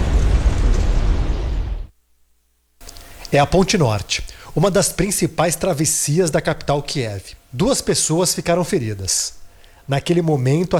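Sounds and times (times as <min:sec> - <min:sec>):
drone strike explosion: 0:00.0 - 0:01.9
speech: 0:03.3 - 0:10.7.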